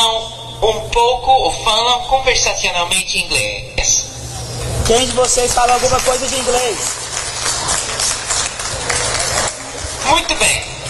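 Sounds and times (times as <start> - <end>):
speech: 0.6 - 3.7, 4.9 - 7.0, 10.1 - 10.7
crowd applauding: 4.7 - 10.8.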